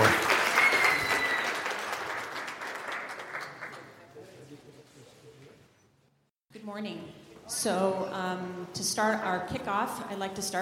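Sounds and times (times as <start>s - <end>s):
audience applause: 0.0s - 4.0s
speech: 6.8s - 10.6s.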